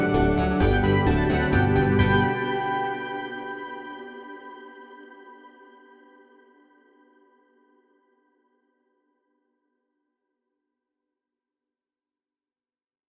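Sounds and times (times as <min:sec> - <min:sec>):
backing music: 0:00.0 - 0:03.6.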